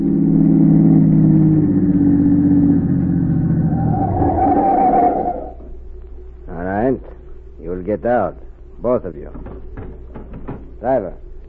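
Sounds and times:
car engine driving and revving: 0.0s - 5.7s
speech: 8.0s - 9.6s, 10.8s - 11.2s.

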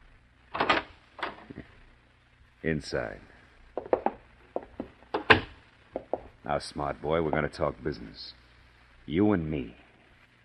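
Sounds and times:
door knob turning: 0.6s - 1.4s, 3.8s - 6.3s
door swinging open: 0.6s - 1.5s, 5.2s - 6.2s
speech: 2.6s - 3.3s, 6.5s - 8.4s, 9.1s - 9.8s.

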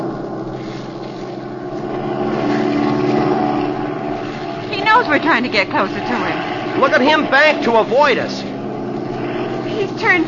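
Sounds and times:
propeller airplane engine droning in flight: 0.0s - 10.2s
speech: 5.1s - 8.5s, 9.8s - 10.2s.

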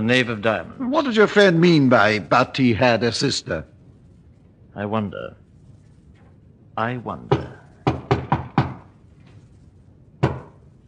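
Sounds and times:
speech: 0.0s - 3.7s, 4.8s - 5.4s, 6.8s - 7.6s
knocking on a wooden cupboard panel from the inside: 7.3s - 8.9s, 10.2s - 10.6s.

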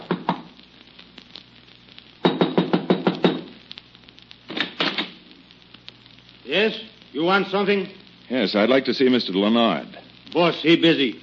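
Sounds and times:
faint steady hiss: 0.0s - 11.2s
knocking on a wooden door: 2.2s - 3.5s
speech: 6.5s - 11.2s.

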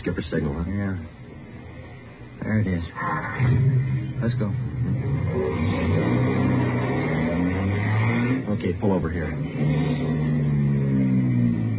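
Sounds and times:
speech: 0.1s - 1.2s, 2.4s - 6.6s, 8.4s - 10.4s
car engine starting: 3.0s - 11.7s.

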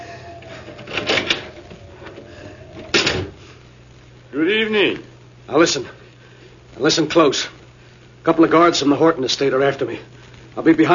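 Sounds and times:
door opening: 0.0s - 3.4s
speech: 4.4s - 6.0s, 6.8s - 7.6s, 8.2s - 10.9s.

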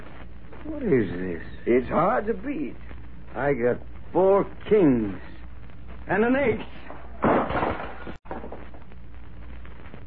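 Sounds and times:
speech: 0.6s - 5.3s, 6.1s - 7.4s
lamp crashing to the floor: 6.8s - 8.9s
glass shattering: 7.2s - 8.6s.

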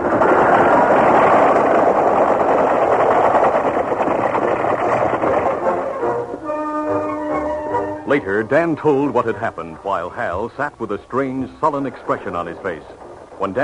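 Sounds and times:
stampeding longhorn cattle herd thundering past: 0.0s - 13.6s
high-pitched call: 6.4s - 8.1s
speech: 8.1s - 13.6s.

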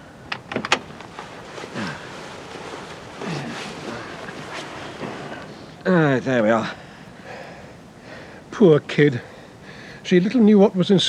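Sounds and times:
creaking and rustling movement: 0.0s - 6.5s
low steady hiss: 0.0s - 11.0s
car door opening: 0.3s - 0.9s
speech: 5.8s - 6.8s, 8.6s - 9.3s, 10.1s - 11.0s.

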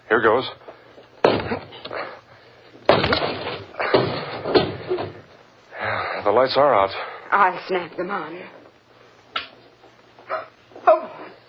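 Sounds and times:
speech: 0.1s - 0.6s, 6.2s - 8.6s
door being forced open: 1.2s - 2.0s, 2.9s - 5.3s.

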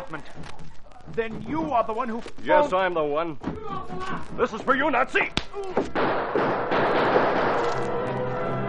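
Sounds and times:
speech: 0.1s - 8.2s
gunshots blasting a lock off a door: 5.8s - 8.6s.

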